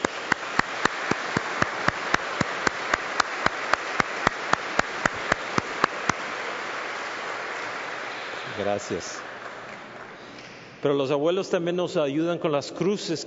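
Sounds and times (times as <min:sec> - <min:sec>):
audience applause: 0:00.0 - 0:10.3
speech: 0:08.6 - 0:09.3, 0:10.8 - 0:13.2.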